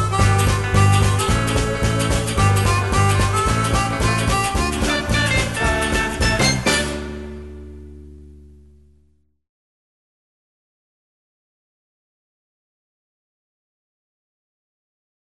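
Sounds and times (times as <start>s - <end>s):
music bed: 0.0s - 9.1s.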